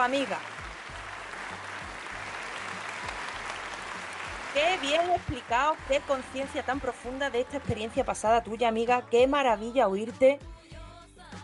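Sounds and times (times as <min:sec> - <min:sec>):
speech: 0:00.0 - 0:00.6, 0:04.5 - 0:10.5
applause from a group of people: 0:00.0 - 0:08.3.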